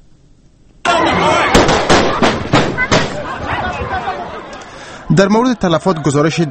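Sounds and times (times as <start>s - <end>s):
gunshots fired into the air during demonstrations in Osh: 0.9s - 3.8s
laughter: 0.9s - 6.4s
speech: 5.1s - 6.4s.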